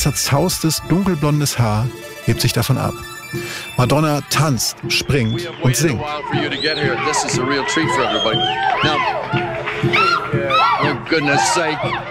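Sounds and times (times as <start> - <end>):
speech: 0.0 - 12.0
concert audience cheering and screaming: 5.1 - 12.0.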